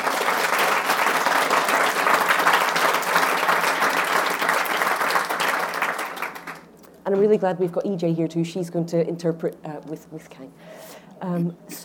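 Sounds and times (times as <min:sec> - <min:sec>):
audience applause welcoming authors at an Edinburgh event: 0:00.0 - 0:06.7
speech: 0:07.1 - 0:11.8.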